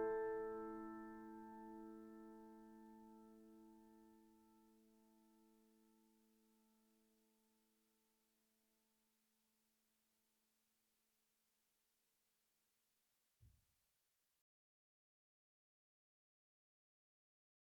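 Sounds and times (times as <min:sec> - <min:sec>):
Nord Grand stage piano: 0:00.0 - 0:06.0.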